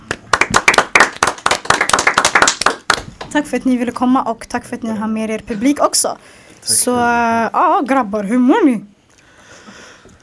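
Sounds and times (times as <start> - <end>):
audience applause: 0.1 - 3.1
speech: 3.3 - 8.9.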